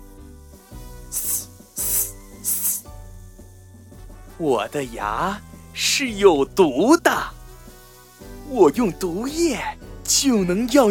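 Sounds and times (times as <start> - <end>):
viper hissing: 1.0 - 3.0
speech: 4.4 - 7.4, 8.5 - 10.8.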